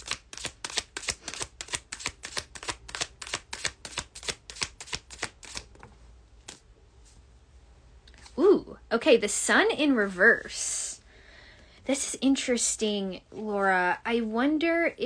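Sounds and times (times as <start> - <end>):
tarot cards being shuffled: 0.0 - 7.2
speech: 8.9 - 10.7, 11.9 - 15.0.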